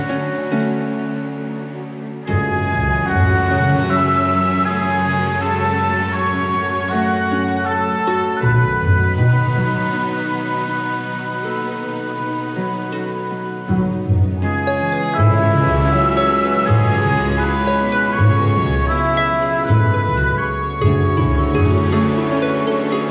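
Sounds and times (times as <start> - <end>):
woodwinds playing game menu music in F sharp minor: 0.0 - 23.0.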